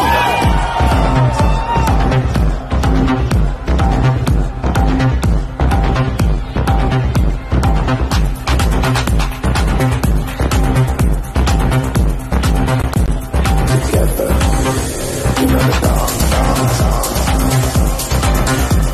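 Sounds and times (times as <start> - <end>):
large festival crowd screaming and cheering: 0.0 - 18.9
loud pounding music with thumping beat and heavy bass: 0.0 - 18.9.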